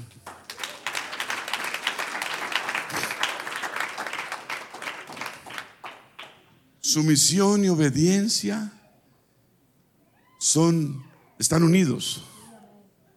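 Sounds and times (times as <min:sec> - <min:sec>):
audience applause: 0:00.0 - 0:06.4
speech: 0:06.9 - 0:08.8, 0:10.5 - 0:12.3.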